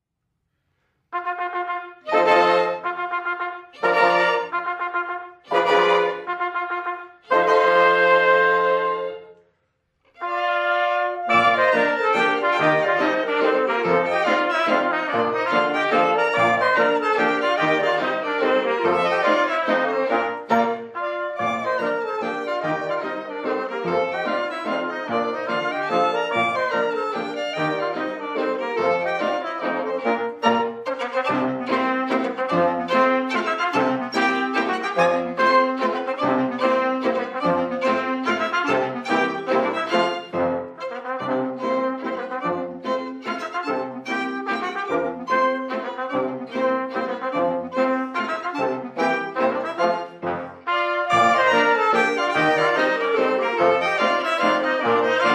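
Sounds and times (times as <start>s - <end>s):
mazurka: 1.2s - 9.3s, 10.1s - 55.3s.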